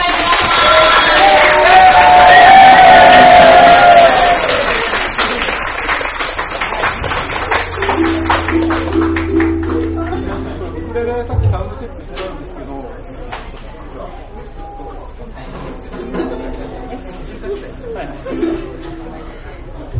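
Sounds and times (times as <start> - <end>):
audience applauding and cheering for guests: 0.0 - 10.8
low steady hum: 7.5 - 13.2.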